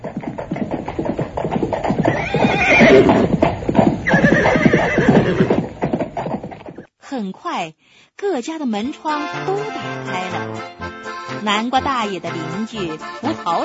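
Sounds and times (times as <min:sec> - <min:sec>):
fast clip-clop hoofbeats of a horse-drawn carriage: 0:00.0 - 0:06.9, 0:11.2 - 0:13.6
horse of a speeding horse-drawn carriage whinnying: 0:02.0 - 0:06.9
speech: 0:07.2 - 0:13.6.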